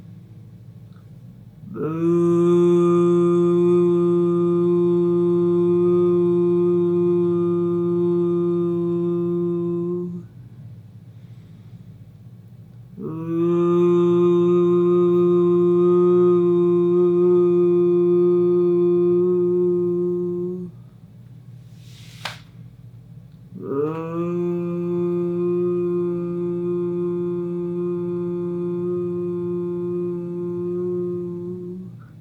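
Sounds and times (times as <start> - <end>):
person humming a deep voo tone imitating a foghorn: 1.6 - 10.4, 13.0 - 20.9, 23.5 - 32.1.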